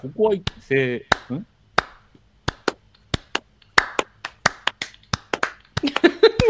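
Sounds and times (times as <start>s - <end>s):
speech: 0.0s - 1.5s
out-of-sync hand clapping by two people: 0.5s - 6.4s
people laughing: 5.8s - 6.4s.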